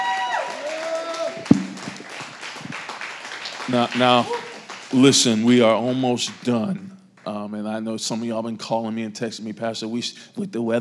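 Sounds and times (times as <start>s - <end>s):
audience applause: 0.0s - 5.7s
sharp thump: 1.5s - 2.0s
speech: 3.7s - 6.9s, 7.5s - 10.7s.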